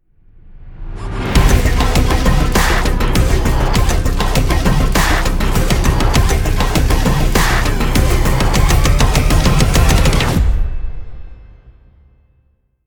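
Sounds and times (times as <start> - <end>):
epic dubstep tech intro logo jingle: 0.7 - 10.8.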